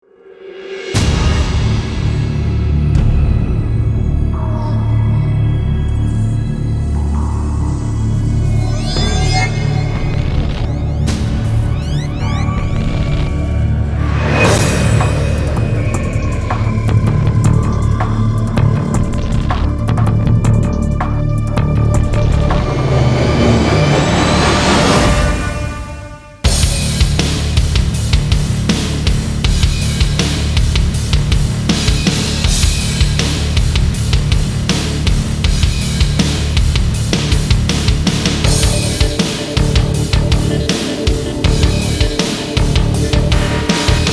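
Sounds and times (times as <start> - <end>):
drums: 0.0 - 44.1.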